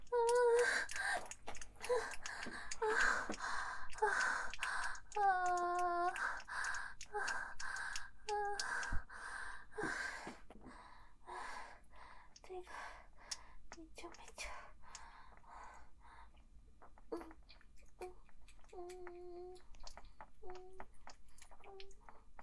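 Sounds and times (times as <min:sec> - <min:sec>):
person counting down: 0:00.0 - 0:06.5
wet squelching masturbation sounds: 0:00.0 - 0:09.5, 0:16.9 - 0:22.4.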